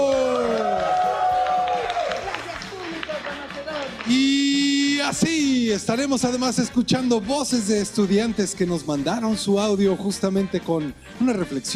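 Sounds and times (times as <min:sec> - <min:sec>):
shouting voices and high whoops: 0:00.0 - 0:02.4
audience clapping: 0:00.0 - 0:04.6
speech: 0:05.1 - 0:11.7.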